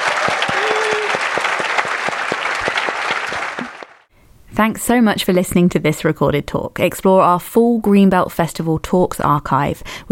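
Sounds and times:
audience applause for panelists: 0.0 - 4.1
speech: 4.6 - 10.1.

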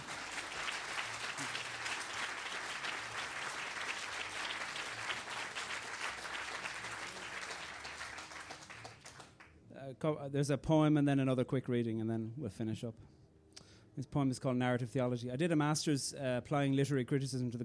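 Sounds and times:
audience applause: 0.0 - 9.5
speech: 10.0 - 13.2, 14.0 - 17.6.

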